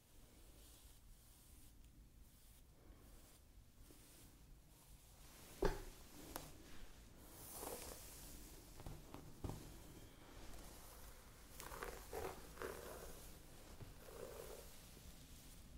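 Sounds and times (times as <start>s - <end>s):
hair being played with: 0.6s - 15.7s.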